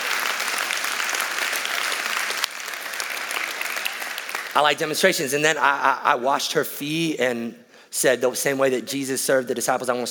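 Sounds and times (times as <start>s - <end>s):
audience cheering and applause: 0.0s - 4.7s
speech: 4.5s - 10.0s.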